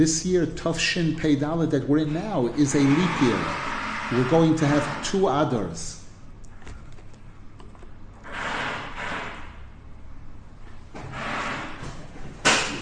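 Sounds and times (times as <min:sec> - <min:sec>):
speech: 0:00.0 - 0:06.0
drilling during bench repair work: 0:02.0 - 0:05.3, 0:08.2 - 0:09.5.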